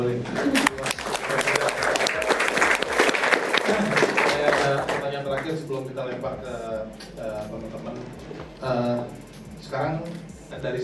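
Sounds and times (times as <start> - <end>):
speech: 0.0 - 0.6, 5.6 - 10.8
applause: 0.4 - 5.1.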